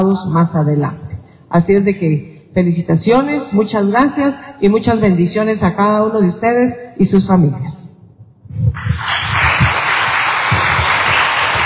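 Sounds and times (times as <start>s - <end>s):
speech: 0.0s - 7.8s
applause: 8.8s - 11.6s.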